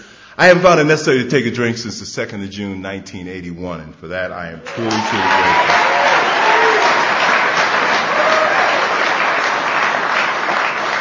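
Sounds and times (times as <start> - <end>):
speech: 0.4 - 6.0
audience applauding: 4.7 - 10.9.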